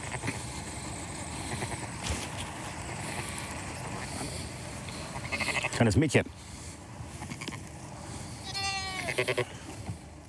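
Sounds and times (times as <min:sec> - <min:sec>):
low outdoor rumble: 0:00.0 - 0:10.2
sheep and lambs bleating: 0:01.3 - 0:01.9, 0:05.1 - 0:05.8, 0:08.4 - 0:09.6
speech: 0:05.8 - 0:06.4, 0:09.2 - 0:09.5.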